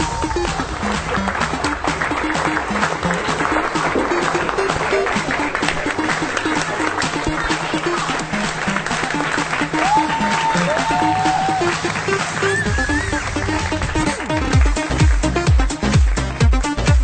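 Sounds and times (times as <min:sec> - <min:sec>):
theatre audience applause: 0:00.0 - 0:16.9.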